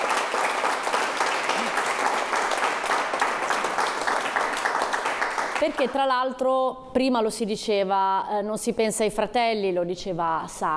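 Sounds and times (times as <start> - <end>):
audience applause: 0.0 - 5.8
speech: 5.6 - 10.7.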